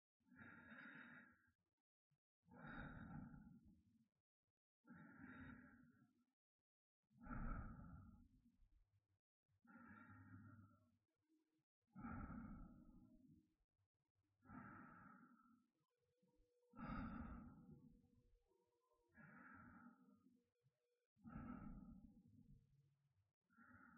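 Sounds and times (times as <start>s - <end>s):
person breathing in sleep: 0.3s - 1.5s, 2.5s - 3.6s, 4.9s - 6.1s, 7.2s - 8.3s, 9.7s - 10.9s, 12.0s - 13.2s, 14.4s - 15.7s, 16.7s - 18.0s, 19.1s - 20.4s, 21.2s - 22.2s, 23.5s - 23.9s.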